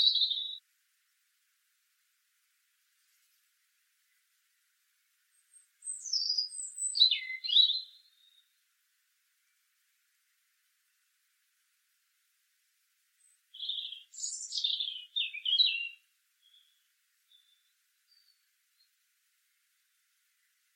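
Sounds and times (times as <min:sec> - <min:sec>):
European robin singing, Erithacus rubecula: 0:00.0 - 0:00.6, 0:05.2 - 0:08.6, 0:13.2 - 0:19.7.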